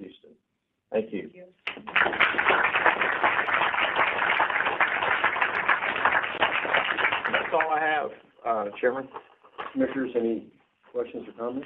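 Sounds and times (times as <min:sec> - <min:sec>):
round of applause: 0:01.6 - 0:08.2
speech: 0:08.6 - 0:11.6.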